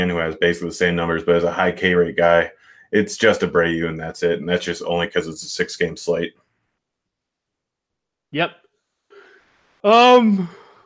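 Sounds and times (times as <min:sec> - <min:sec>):
speech: 0:00.0 - 0:06.4, 0:08.3 - 0:08.6, 0:09.8 - 0:10.6
person yawning: 0:10.2 - 0:10.8.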